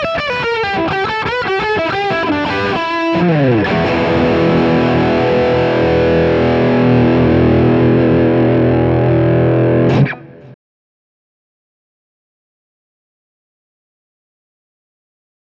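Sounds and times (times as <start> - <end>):
Gretsch electric guitar lead: 0.0 - 10.6.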